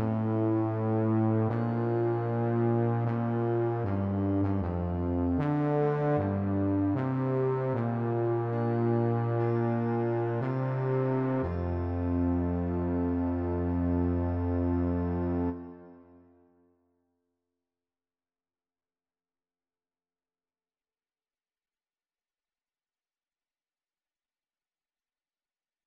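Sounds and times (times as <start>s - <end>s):
bass: 0.0s - 16.1s.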